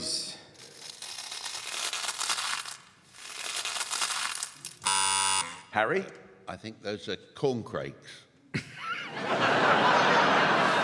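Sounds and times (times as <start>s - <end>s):
Frosties cereal being crunched: 0.6s - 4.8s
speech: 5.8s - 8.3s
laughter: 8.6s - 10.8s.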